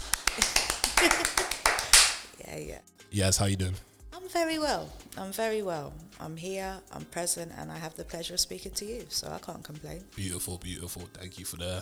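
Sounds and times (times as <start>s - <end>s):
finger snapping as applause: 0.0s - 2.4s
laughter: 0.0s - 3.8s, 7.8s - 11.8s
speech: 0.4s - 1.4s, 2.6s - 11.8s.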